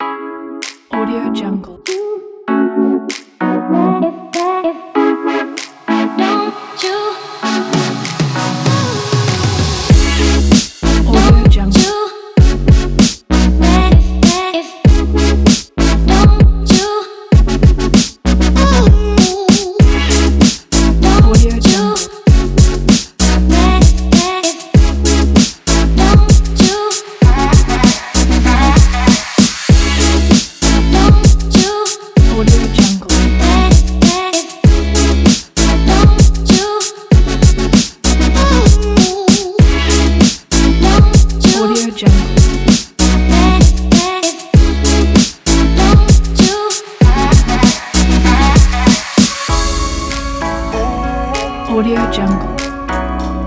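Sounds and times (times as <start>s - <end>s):
hip hop music: 0.0s - 53.4s.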